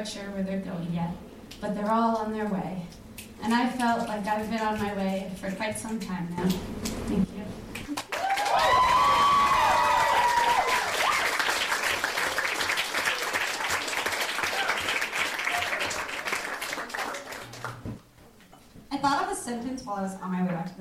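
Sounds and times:
speech: 0:00.0 - 0:07.3, 0:19.9 - 0:20.7
applause: 0:07.8 - 0:17.9.

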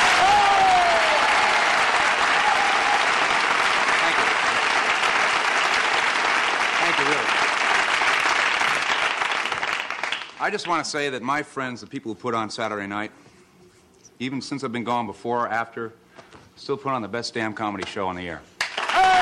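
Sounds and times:
audience applause: 0:00.0 - 0:10.4, 0:18.6 - 0:19.2
speech: 0:10.4 - 0:13.3, 0:14.2 - 0:19.2.

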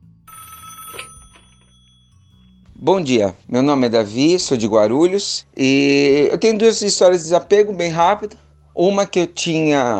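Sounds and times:
telephone ringing: 0:00.0 - 0:02.7
speech: 0:02.8 - 0:09.9.

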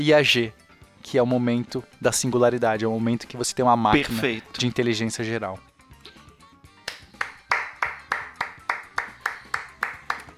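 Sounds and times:
speech: 0:00.0 - 0:06.2
clapping: 0:06.8 - 0:10.3.

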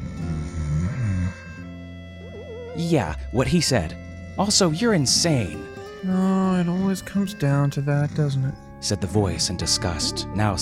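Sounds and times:
voice imitating snoring: 0:00.0 - 0:03.0
speech: 0:02.8 - 0:10.6.

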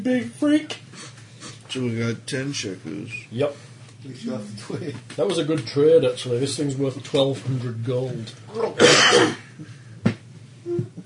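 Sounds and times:
speech: 0:00.0 - 0:00.8, 0:01.7 - 0:09.8
person coughing after choking on a drink: 0:08.6 - 0:09.6.

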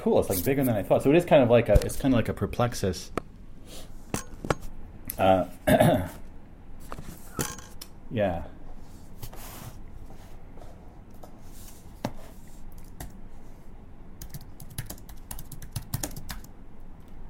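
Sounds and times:
speech: 0:00.0 - 0:03.9, 0:05.2 - 0:06.2, 0:07.4 - 0:08.5
typing on a computer keyboard: 0:14.2 - 0:16.5.

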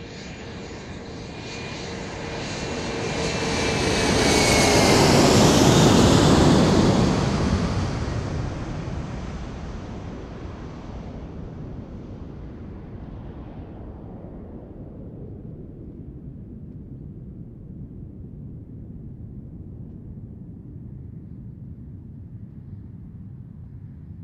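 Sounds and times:
aircraft passing at Kloten airport: 0:00.0 - 0:15.8
aircraft engine whine: 0:00.0 - 0:24.2.

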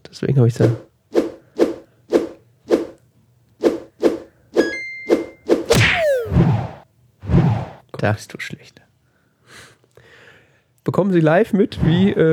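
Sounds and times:
speech: 0:00.1 - 0:00.9, 0:08.0 - 0:08.8, 0:10.9 - 0:12.3
mobile game swishy flap sounds: 0:00.6 - 0:03.0, 0:03.6 - 0:07.8
mobile game descending whoosh: 0:03.6 - 0:07.8
mobile game short bright chime: 0:04.6 - 0:05.5
mobile game sharp smack: 0:05.5 - 0:07.8.

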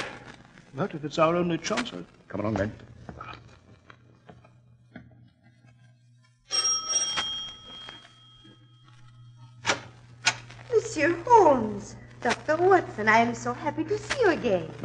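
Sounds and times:
steady low hum: 0:00.0 - 0:14.8
speech: 0:00.7 - 0:02.9, 0:12.6 - 0:14.8
doorbell ringing with a bright metallic tone: 0:06.5 - 0:08.9.

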